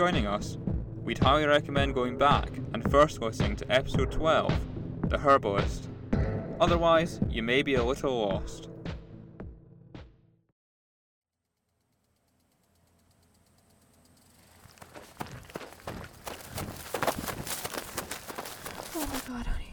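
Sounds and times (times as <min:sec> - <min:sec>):
speech: 0:00.0 - 0:05.9, 0:06.6 - 0:08.7
running footsteps of someone fleeing on foot: 0:14.3 - 0:19.3.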